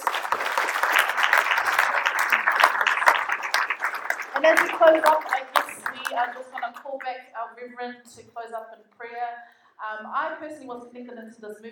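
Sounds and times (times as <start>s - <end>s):
crowd applauding: 0.0s - 7.1s
speech: 4.4s - 5.4s, 6.1s - 11.7s.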